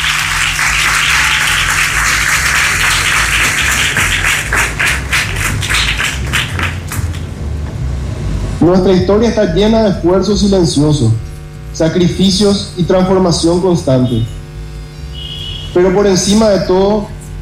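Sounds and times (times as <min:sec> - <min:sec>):
audience applause: 0:00.0 - 0:07.4
speech: 0:08.6 - 0:11.2, 0:11.8 - 0:14.4, 0:15.7 - 0:17.2.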